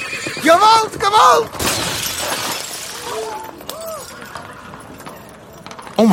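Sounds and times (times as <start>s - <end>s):
speech: 0.4s - 1.6s, 6.0s - 6.1s
glass shattering as horse crashes into delivery cart: 1.6s - 4.1s.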